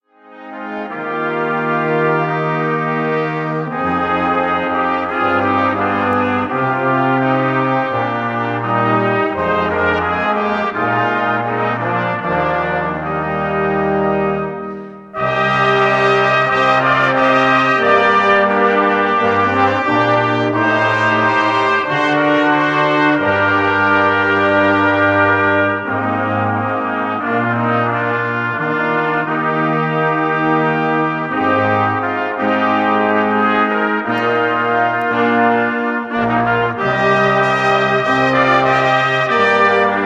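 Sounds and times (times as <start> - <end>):
brass instruments: 0.0 - 40.0.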